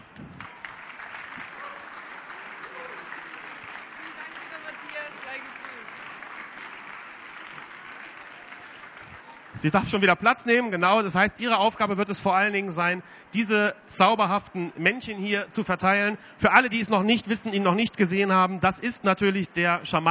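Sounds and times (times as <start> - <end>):
audience applause: 0.0 - 10.1
speech: 9.6 - 20.0.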